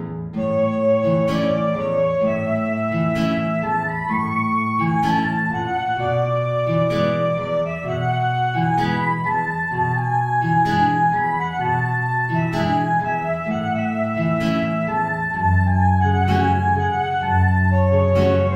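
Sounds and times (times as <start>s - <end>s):
tango music: 0.4s - 18.5s.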